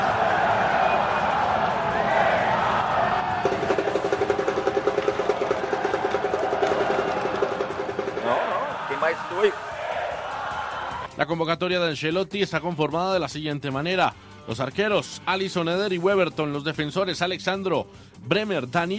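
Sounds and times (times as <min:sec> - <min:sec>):
large crowd cheering and applause: 0:00.0 - 0:11.1
rapid rhythmic clapping or chanting: 0:01.3 - 0:11.0
speech: 0:09.4 - 0:09.6, 0:11.2 - 0:18.9.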